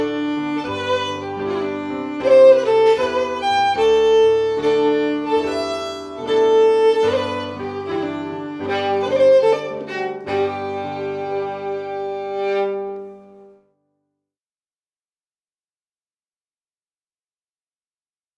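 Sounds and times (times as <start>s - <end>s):
fiddle: 0.0s - 13.6s
piano: 0.0s - 14.0s.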